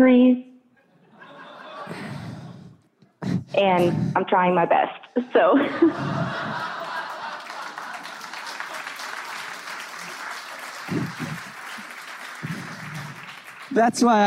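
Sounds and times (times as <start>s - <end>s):
speech: 0.0s - 0.5s, 3.5s - 6.8s, 13.7s - 14.2s
laughter: 0.8s - 2.6s, 5.5s - 13.3s
extended audience applause: 5.9s - 14.2s.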